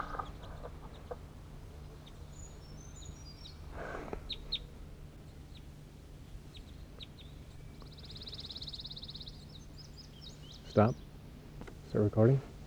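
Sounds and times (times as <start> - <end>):
birds clucking on ground: 0.0 - 1.4
speech: 10.8 - 11.0, 11.9 - 12.5.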